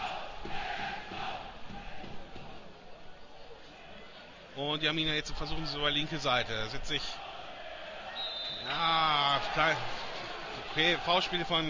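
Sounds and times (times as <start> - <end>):
football stadium crowd chanting and shouting at an Arminia Bielefeld match: 0.0 - 2.6, 7.0 - 11.1
speech: 4.6 - 7.2, 8.7 - 10.0, 10.8 - 11.6.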